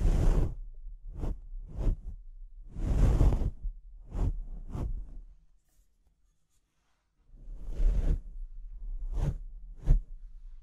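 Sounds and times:
microphone scratching: 0.0 - 2.1, 2.7 - 5.2, 7.6 - 8.3.

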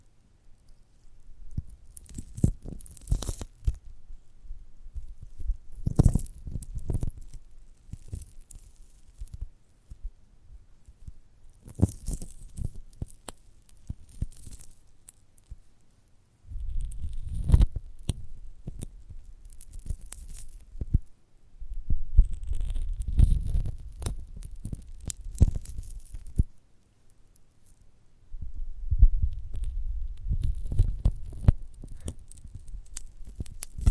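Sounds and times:
chewing and squishing a giant gummy bear: 0.6 - 3.9, 4.9 - 10.0, 10.9 - 15.9, 16.5 - 21.1, 22.2 - 26.6, 29.3 - 33.8.

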